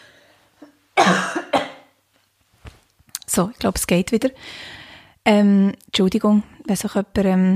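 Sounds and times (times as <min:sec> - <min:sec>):
person coughing after choking on something: 0:00.6 - 0:02.0
speech: 0:03.4 - 0:07.5.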